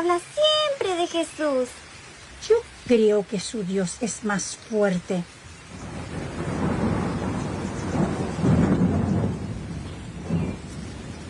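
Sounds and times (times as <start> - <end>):
speech: 0.0 - 5.9
torrential rain sound effect for a radio drama: 0.0 - 11.2
deep rolls of thunder: 5.0 - 11.2.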